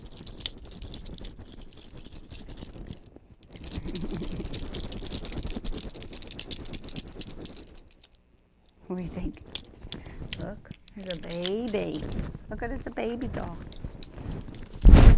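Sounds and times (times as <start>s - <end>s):
keys jingling: 0.0s - 8.2s, 9.4s - 12.2s
speech: 8.9s - 9.5s, 10.5s - 13.8s.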